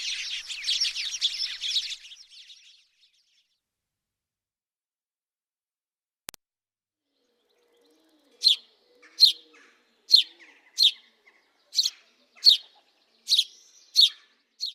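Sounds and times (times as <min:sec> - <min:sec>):
house sparrows chattering: 0:00.0 - 0:03.6, 0:07.2 - 0:14.7.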